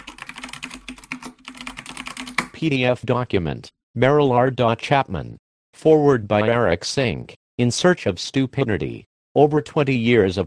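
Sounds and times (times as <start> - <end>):
typing a password on a computer keyboard: 0.0 - 2.6
speech: 2.6 - 10.4.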